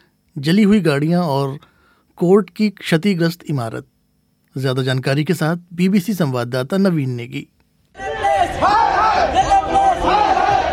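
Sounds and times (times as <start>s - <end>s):
speech: 0.4s - 3.9s, 4.5s - 7.6s
crowd of lawyers chanting slogans against Delhi Police outside court: 8.0s - 10.7s.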